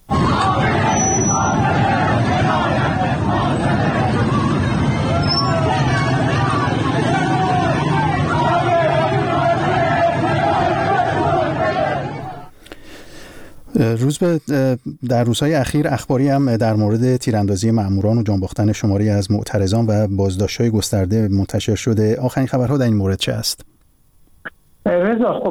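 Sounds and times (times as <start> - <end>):
large protest crowd chanting slogans: 0.1 - 12.5
speech: 14.0 - 23.8, 24.8 - 25.4.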